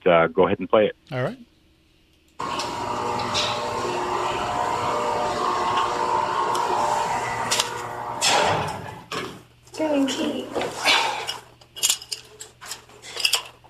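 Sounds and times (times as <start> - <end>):
speech: 0.0 - 1.5, 9.8 - 10.9
elevator motor hum: 2.4 - 9.2.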